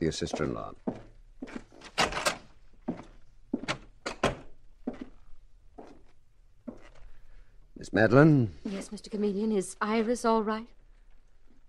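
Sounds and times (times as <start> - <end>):
speech: 0.0 - 1.6, 7.9 - 10.8
door opening and closing: 1.7 - 4.6.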